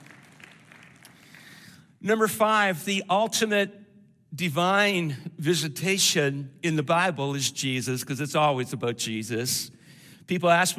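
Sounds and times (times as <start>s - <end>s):
audience clapping: 0.0s - 1.6s
speech: 2.0s - 10.7s.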